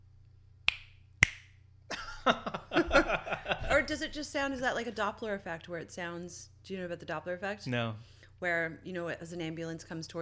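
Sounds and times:
finger snap: 0.7 - 1.5
laughter: 1.9 - 4.1
speech: 2.3 - 2.6, 3.9 - 10.2.

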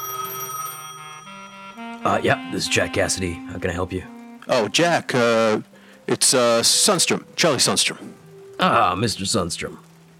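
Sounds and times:
telephone ringing: 0.0 - 2.9
speech: 2.0 - 9.9.

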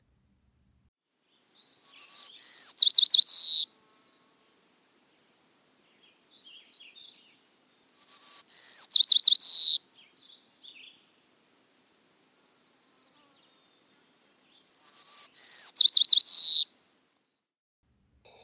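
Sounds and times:
White-crowned Sparrow song: 1.3 - 3.8, 5.0 - 17.2.

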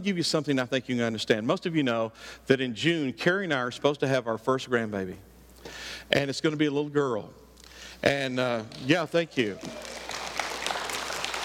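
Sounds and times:
speech: 0.0 - 7.4, 8.0 - 9.9
audience clapping: 8.4 - 11.4.

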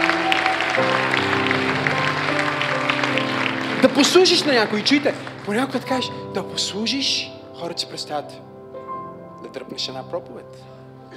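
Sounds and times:
audience applause: 0.0 - 6.1
sustained keyboard or organ chords: 0.0 - 11.1
speech: 3.9 - 8.5, 9.5 - 10.8.

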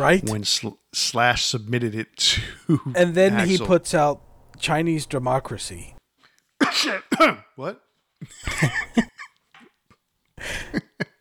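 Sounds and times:
speech: 0.0 - 6.0, 6.7 - 9.1
person coughing: 6.6 - 7.5.

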